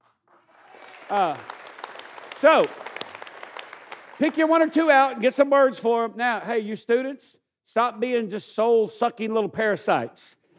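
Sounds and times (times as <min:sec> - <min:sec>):
audience clapping: 0:00.3 - 0:05.3
speech: 0:01.1 - 0:01.5, 0:02.4 - 0:02.9, 0:04.2 - 0:10.4.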